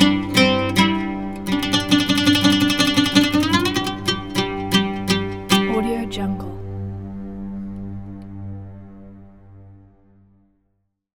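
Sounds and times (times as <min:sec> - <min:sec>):
Middle Eastern oud: 0:00.0 - 0:09.0.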